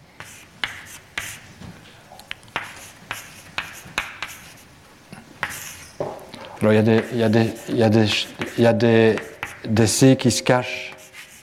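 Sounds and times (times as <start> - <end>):
writing out equations by hand: 0.2 - 1.4, 2.6 - 4.7, 5.4 - 6.0, 6.7 - 9.7, 10.8 - 11.4
speech: 6.6 - 10.9.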